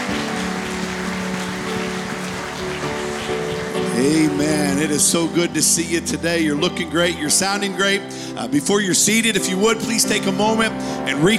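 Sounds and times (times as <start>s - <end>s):
audience hand clapping applause: 0.0s - 5.2s
sustained low musical tones: 0.0s - 11.3s
speech: 4.0s - 11.3s.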